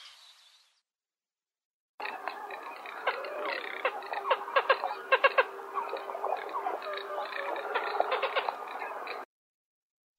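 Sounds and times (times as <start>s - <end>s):
garganey giving short nasal notes in Uzbekistan: 2.0s - 9.3s.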